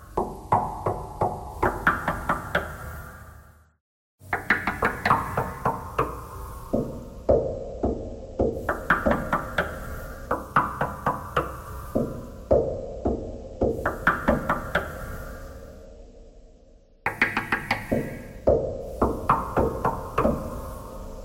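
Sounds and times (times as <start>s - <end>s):
knocking thread noise: 0.1s - 2.8s, 4.3s - 15.0s, 17.1s - 20.6s.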